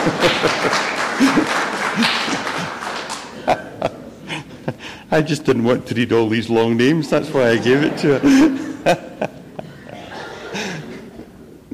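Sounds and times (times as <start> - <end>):
speech: 0.0 - 2.2, 5.2 - 9.1
round of applause from a group: 0.0 - 3.5
laughter: 0.0 - 5.0, 7.2 - 11.4.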